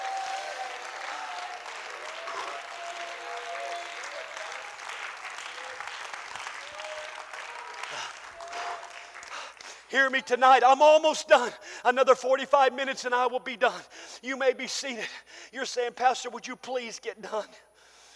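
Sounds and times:
audience clapping: 0.0s - 10.2s
speech: 9.9s - 17.7s.

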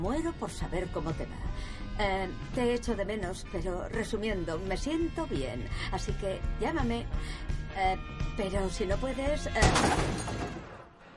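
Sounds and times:
speech: 0.0s - 10.7s
car crashing into a parked car: 9.6s - 10.9s.

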